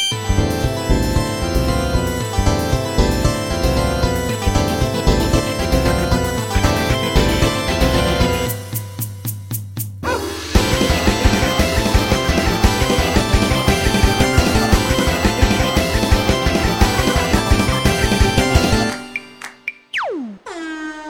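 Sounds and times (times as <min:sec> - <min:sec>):
pipe organ: 0:00.0 - 0:08.5, 0:10.6 - 0:19.6
rock electric guitar: 0:00.0 - 0:08.5, 0:10.5 - 0:19.2
synthesizer: 0:00.0 - 0:09.0, 0:10.2 - 0:20.4
drums: 0:00.0 - 0:20.0
dog barking: 0:10.0 - 0:10.4.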